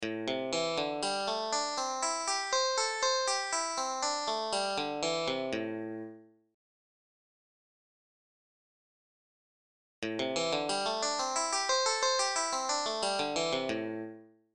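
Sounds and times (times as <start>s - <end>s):
slide playing exercise: 0.5s - 5.9s, 10.1s - 13.9s.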